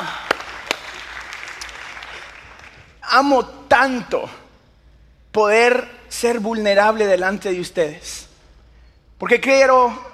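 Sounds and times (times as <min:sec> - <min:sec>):
audience applauding: 0:00.0 - 0:03.0
sharp loud claps: 0:00.0 - 0:03.0
speech: 0:03.1 - 0:04.4, 0:05.3 - 0:08.3, 0:09.2 - 0:10.1.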